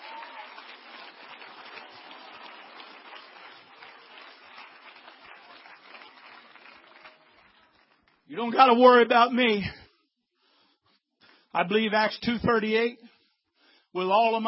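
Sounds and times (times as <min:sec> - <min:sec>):
people clapping hands: 0:00.0 - 0:08.8
speech: 0:08.3 - 0:09.8, 0:11.6 - 0:13.1, 0:14.0 - 0:14.4.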